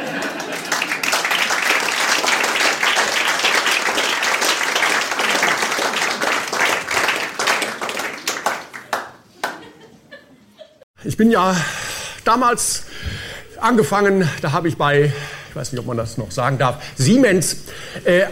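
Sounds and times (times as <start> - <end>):
laughter: 0.0 - 1.3, 9.3 - 10.9
crowd applauding: 0.0 - 9.7
speech: 11.2 - 12.9, 13.6 - 18.3.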